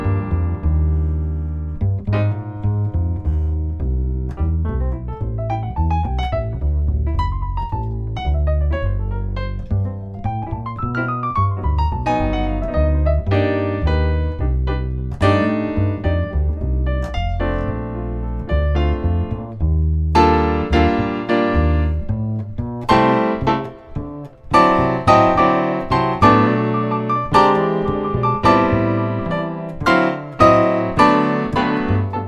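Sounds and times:
jazz piano bass notes: 0:00.0 - 0:32.2.

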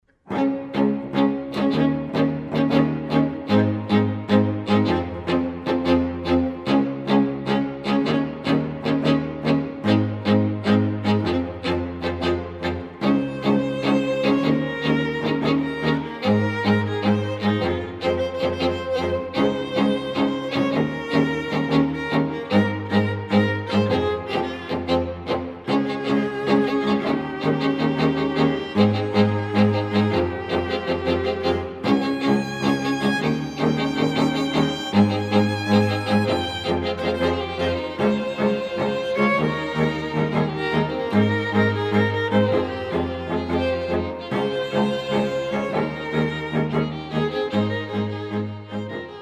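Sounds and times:
string quartet: 0:00.0 - 0:49.2.

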